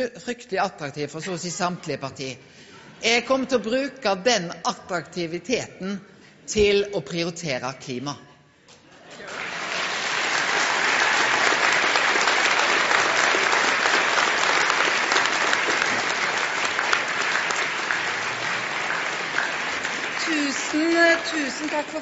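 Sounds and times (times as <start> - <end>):
speech: 0.0 - 8.3, 21.3 - 21.9
audience applause: 9.1 - 21.9.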